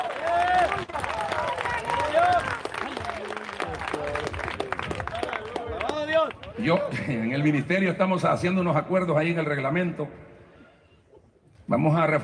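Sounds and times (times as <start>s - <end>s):
audience applauding: 0.0s - 7.0s
speech: 6.6s - 10.2s, 11.7s - 12.2s.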